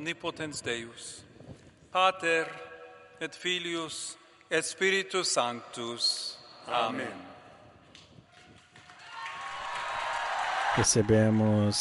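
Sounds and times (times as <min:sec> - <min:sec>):
speech: 0:00.0 - 0:01.3, 0:01.9 - 0:07.3, 0:10.8 - 0:11.7
applause of the faithful after blessing: 0:08.8 - 0:11.7.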